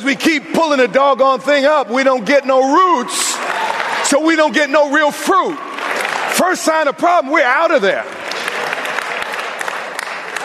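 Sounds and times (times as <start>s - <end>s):
speech: 0.0s - 5.7s, 6.4s - 8.2s
audience clapping: 3.2s - 4.6s, 5.3s - 10.4s.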